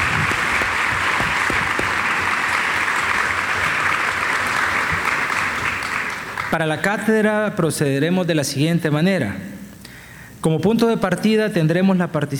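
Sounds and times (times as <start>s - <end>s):
audience applause: 0.0s - 6.8s
speech: 6.5s - 9.5s, 10.4s - 12.3s.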